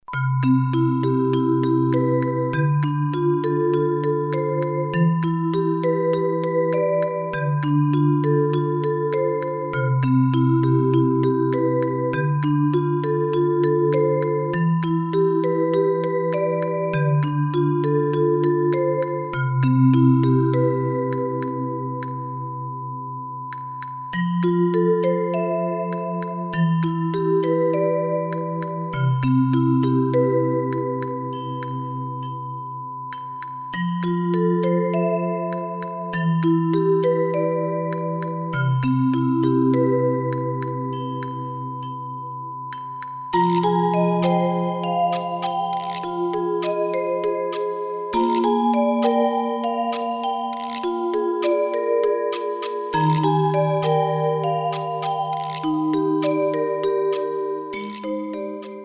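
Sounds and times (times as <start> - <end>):
music box: 0.0 - 58.8.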